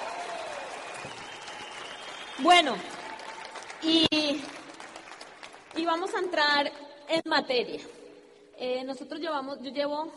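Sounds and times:
audience applause: 0.0 - 6.2
speech: 2.4 - 3.0, 3.8 - 4.5, 5.8 - 8.0, 8.6 - 10.1.

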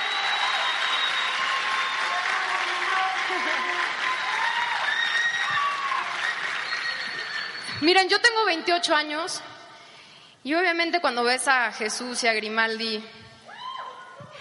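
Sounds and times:
audience applause: 0.0 - 7.7
laughter: 2.8 - 4.0
speech: 7.8 - 9.5, 10.4 - 13.2.

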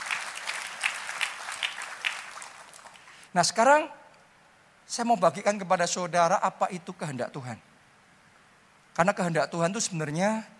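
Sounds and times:
audience applause: 0.0 - 3.2
speech: 3.3 - 4.0, 4.9 - 7.7, 9.0 - 10.5.

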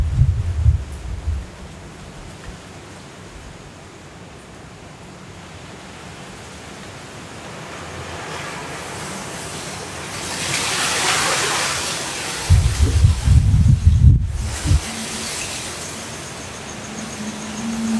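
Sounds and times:
deep rumbling thuds: 0.0 - 2.6, 12.5 - 14.8
hurricane winds roaring: 0.0 - 2.6, 7.4 - 17.9
rain hissing: 0.0 - 3.8, 6.1 - 17.9.

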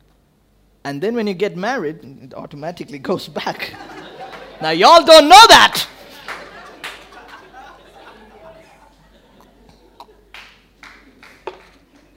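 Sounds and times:
speech: 0.8 - 4.0, 4.6 - 5.9
laughter: 3.5 - 12.1
audience clapping: 4.2 - 8.2, 9.7 - 12.1.

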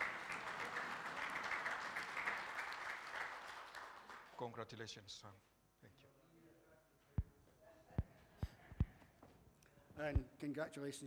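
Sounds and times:
audience applause: 0.0 - 4.4
speech: 4.4 - 6.0, 10.0 - 11.0.

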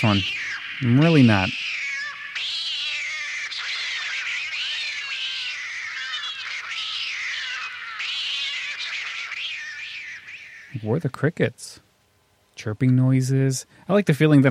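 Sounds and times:
speech: 0.0 - 1.6, 10.8 - 11.8, 12.6 - 14.4
cat yowling and meowing: 0.0 - 10.4.

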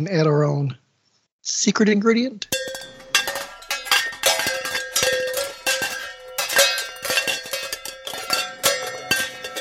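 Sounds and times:
speech: 0.0 - 0.8, 1.4 - 2.9
metal kitchen pans banged like drums: 2.5 - 9.5.

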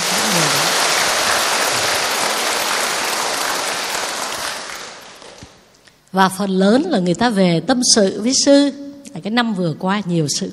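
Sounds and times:
audience applause: 0.0 - 5.7
speech: 6.1 - 10.5.

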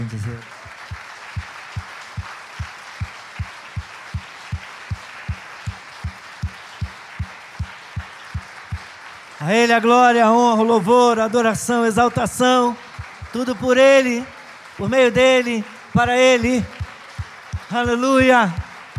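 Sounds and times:
audience clapping in a rhythmic beat: 0.0 - 18.9
crowd noise: 0.0 - 18.9
speech: 0.1 - 0.6, 9.4 - 16.8, 17.7 - 18.6.

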